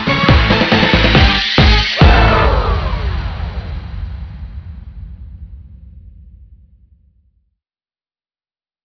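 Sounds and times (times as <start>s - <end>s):
cheerful dance music: 0.0s - 3.7s.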